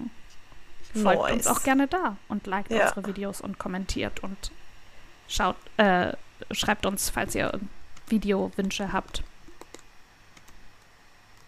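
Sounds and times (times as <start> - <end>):
speech: 1.0 - 4.6, 5.3 - 9.3
typing on a computer keyboard while searching for books: 8.0 - 10.6.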